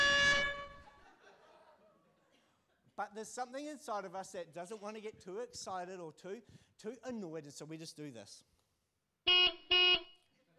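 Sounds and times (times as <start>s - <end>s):
car horn beeping: 0.0s - 1.0s, 9.3s - 10.2s
laughter: 0.8s - 2.9s
speech: 3.0s - 8.5s.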